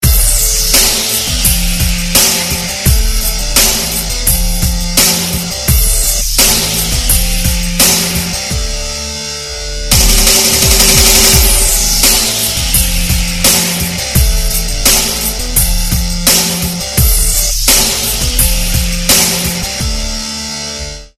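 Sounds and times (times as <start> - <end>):
rock music ringtone: 0.0 - 21.1.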